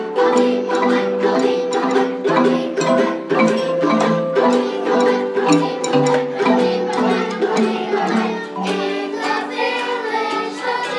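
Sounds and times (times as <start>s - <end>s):
jungle xylophone: 0.0s - 10.8s.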